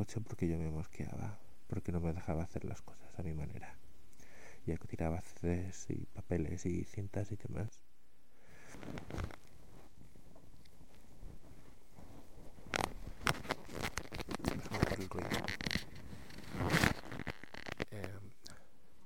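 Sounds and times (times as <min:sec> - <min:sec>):
speech: 0:00.0 - 0:03.8, 0:04.7 - 0:07.8, 0:08.8 - 0:09.4, 0:15.1 - 0:15.6
rustling and crinkling from pulling a mobile phone out: 0:08.6 - 0:18.3.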